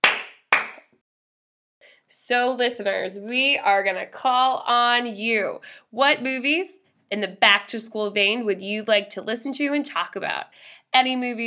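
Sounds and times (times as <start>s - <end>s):
hand clapping: 0.0s - 0.9s
speech: 2.1s - 11.4s.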